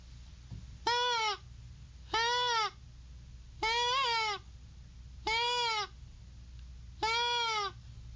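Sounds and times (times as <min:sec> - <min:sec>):
deer call imitating a doe bleat, inhaled through its flex tube end: 0:00.9 - 0:01.4, 0:02.1 - 0:02.8, 0:03.6 - 0:04.4, 0:05.3 - 0:05.9, 0:07.0 - 0:07.8.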